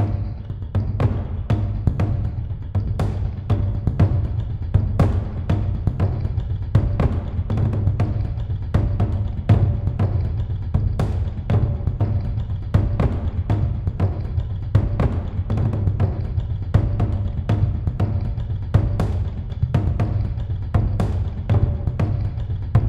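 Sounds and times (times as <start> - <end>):
big complex musical drums: 0.0 - 22.8.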